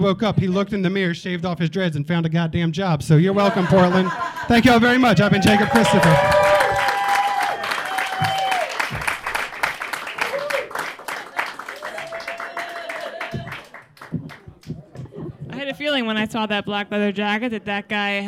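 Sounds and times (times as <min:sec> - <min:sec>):
speech: 0:00.0 - 0:06.6, 0:16.0 - 0:18.2
laughter: 0:03.2 - 0:06.7
audience applause and cheering for a stand-up comedian: 0:05.0 - 0:15.2.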